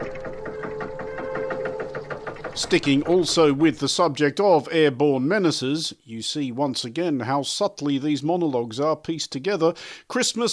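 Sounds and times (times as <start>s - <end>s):
gear grinding sound effect: 0.0s - 3.8s
speech: 2.6s - 10.5s.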